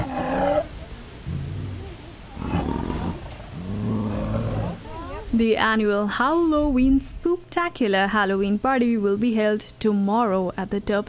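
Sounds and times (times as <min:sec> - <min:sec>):
big cats roaring and growling: 0:00.0 - 0:05.2
speech: 0:05.4 - 0:11.0.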